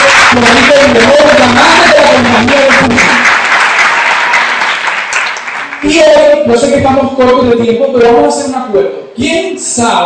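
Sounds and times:
crowd clapping: 0.0s - 6.4s
speech: 0.4s - 2.6s, 5.8s - 10.0s.

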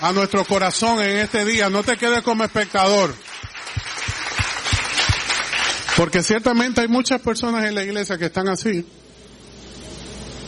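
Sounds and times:
speech: 0.0s - 3.3s, 6.0s - 9.1s
audience applauding: 0.0s - 6.3s.

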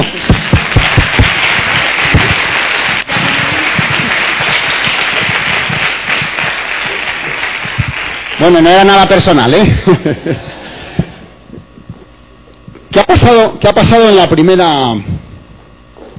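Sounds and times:
audience applause: 0.0s - 9.6s
speech: 8.4s - 10.5s, 13.0s - 15.1s
laughter: 9.6s - 12.1s.

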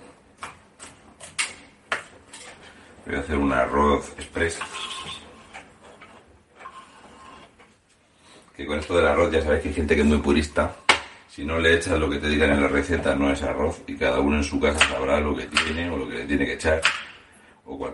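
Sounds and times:
speech: 3.0s - 4.9s, 8.6s - 10.8s, 11.4s - 17.0s, 17.7s - 17.9s
knife chopping garlic on a board: 14.7s - 15.8s, 16.8s - 17.2s.

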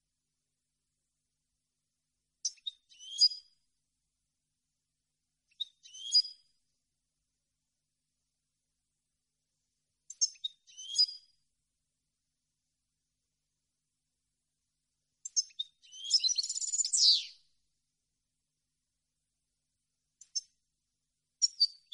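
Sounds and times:
European goldfinch chirping: 2.5s - 3.4s, 5.5s - 6.4s, 10.1s - 11.2s, 15.3s - 17.4s, 21.4s - 21.9s.

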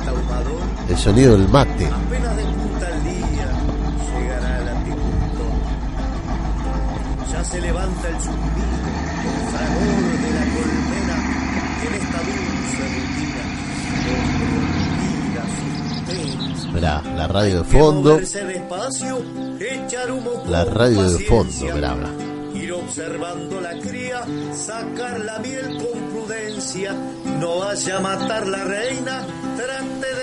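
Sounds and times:
indistinct voices murmuring: 0.0s - 18.3s, 20.4s - 22.4s
pickup truck engine rumbling while driving: 0.0s - 18.3s, 20.5s - 22.5s
speech: 0.4s - 2.5s, 7.4s - 10.8s, 16.1s - 30.2s.

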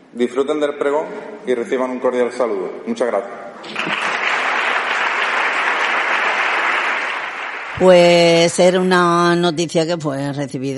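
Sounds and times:
speech: 0.1s - 4.1s, 7.8s - 10.7s
audience applause: 3.6s - 8.2s.

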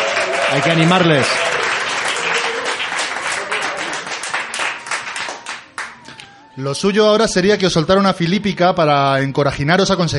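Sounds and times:
audience applause: 0.0s - 6.1s
speech: 0.5s - 1.5s, 6.6s - 10.1s.

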